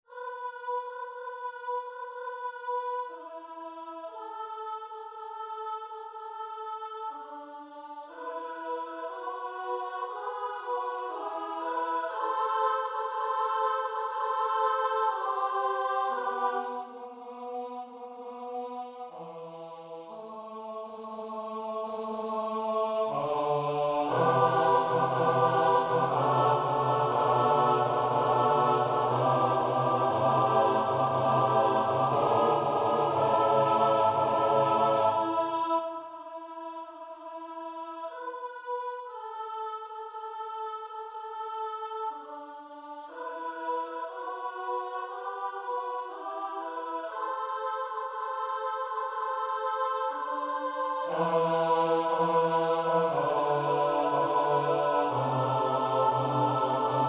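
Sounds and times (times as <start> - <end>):
midi choral piece: 0.0 - 57.0.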